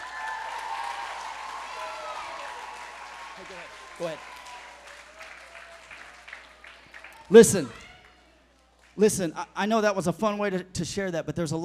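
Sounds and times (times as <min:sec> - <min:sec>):
audience applauding: 0:00.0 - 0:09.0
speech: 0:03.4 - 0:04.4, 0:07.3 - 0:07.8, 0:09.0 - 0:11.6.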